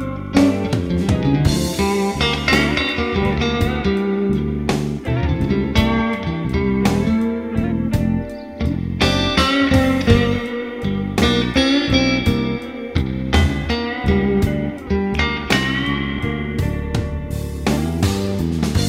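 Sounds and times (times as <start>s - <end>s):
clean vintage Stratocaster electric guitar: 0.0s - 18.8s.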